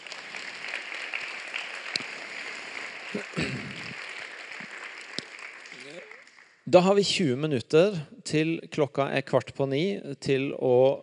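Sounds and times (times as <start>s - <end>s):
applause: 0.0s - 6.7s
speech: 3.1s - 3.8s, 6.7s - 11.0s.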